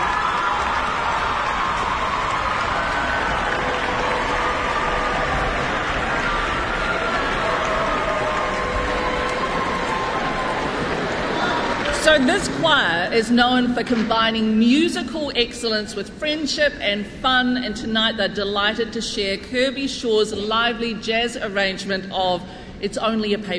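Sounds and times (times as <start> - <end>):
audience applause: 0.0 - 12.7
speech: 12.2 - 23.5.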